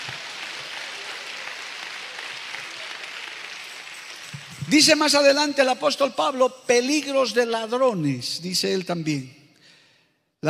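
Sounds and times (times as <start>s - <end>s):
audience applauding: 0.0s - 5.2s
speech: 4.7s - 9.4s.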